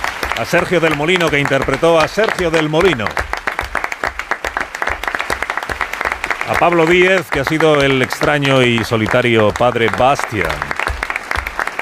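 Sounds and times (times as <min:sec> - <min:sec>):
audience clapping after a staged Edgar Allan Poe tale: 0:00.0 - 0:11.8
speech: 0:00.4 - 0:03.3, 0:06.5 - 0:10.7.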